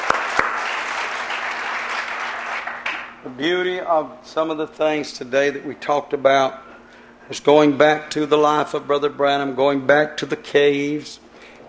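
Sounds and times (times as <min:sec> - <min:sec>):
church congregation applauding standing together: 0:00.0 - 0:03.2
speech: 0:03.3 - 0:06.7, 0:07.3 - 0:11.6.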